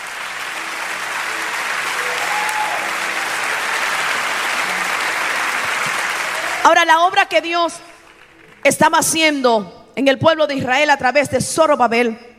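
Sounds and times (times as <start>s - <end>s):
audience applause: 0.0s - 7.4s, 8.0s - 8.6s
speech: 6.6s - 7.9s, 8.6s - 12.3s.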